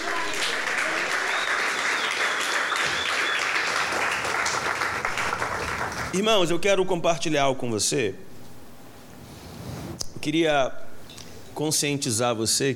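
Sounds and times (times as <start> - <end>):
audience applause: 0.0 - 6.2
speech: 6.1 - 8.3, 10.2 - 10.8, 11.6 - 12.7.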